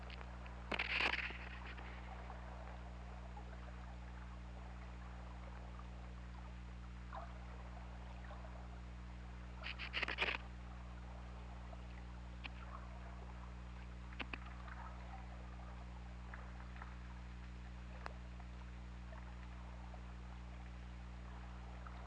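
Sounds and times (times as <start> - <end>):
whale clicks: 0.0 - 2.9, 9.6 - 10.5, 11.9 - 19.7
low underwater hum: 0.0 - 22.0.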